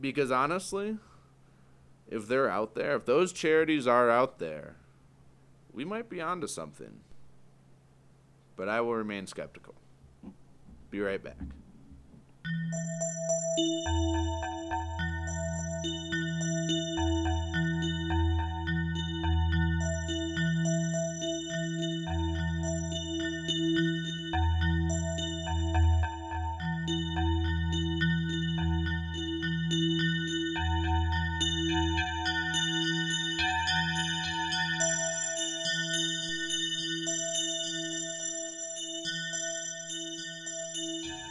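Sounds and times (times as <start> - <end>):
speech: 0.0 - 1.1, 2.1 - 4.8, 5.8 - 7.1, 8.6 - 11.6
bells ringing: 12.5 - 41.2.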